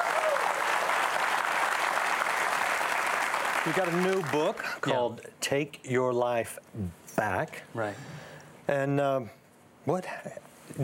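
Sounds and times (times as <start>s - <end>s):
studio audience applauding to welcome a guest: 0.0s - 4.8s
speech: 3.6s - 10.8s.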